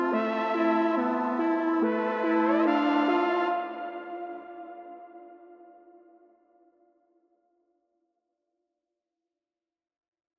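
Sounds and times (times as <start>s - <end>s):
music at 142 BPM in A minor: 0.0s - 8.0s.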